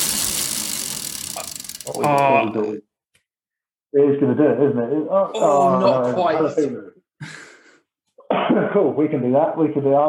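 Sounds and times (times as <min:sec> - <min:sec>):
spinning wheel clicking as it turns: 0:00.0 - 0:02.4
speech: 0:01.8 - 0:02.9, 0:03.9 - 0:07.4, 0:08.5 - 0:10.0
person calling out: 0:01.9 - 0:02.8, 0:05.3 - 0:06.6.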